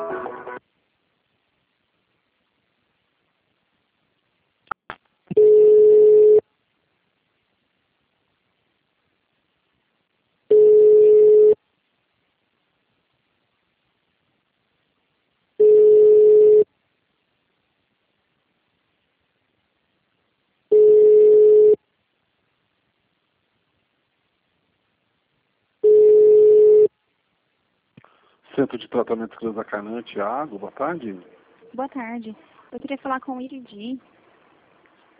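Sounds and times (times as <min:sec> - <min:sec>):
telephone ringback tone while a call to a clinic connects: 0:05.3 - 0:06.4, 0:10.5 - 0:11.6, 0:15.6 - 0:16.7, 0:20.7 - 0:21.8, 0:25.8 - 0:26.9
speech: 0:28.6 - 0:34.2.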